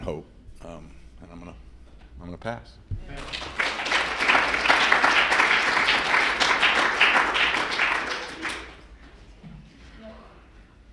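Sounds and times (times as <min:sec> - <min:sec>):
speech: 0:00.1 - 0:03.6
crowd applause: 0:03.1 - 0:08.9.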